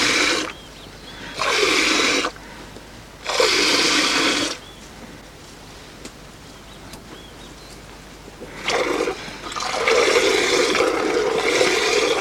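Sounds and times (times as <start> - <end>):
buffalo being milked on a farm in Nepal: 0.0 - 0.6, 1.3 - 2.4, 3.2 - 4.6, 8.4 - 12.2.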